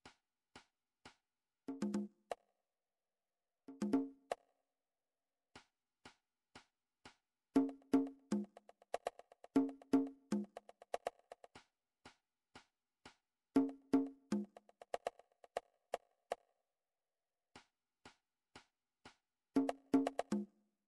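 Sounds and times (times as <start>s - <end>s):
conga drum: 1.7s - 2.2s, 3.7s - 4.2s, 7.6s - 11.6s, 13.6s - 15.7s, 19.6s - 20.5s.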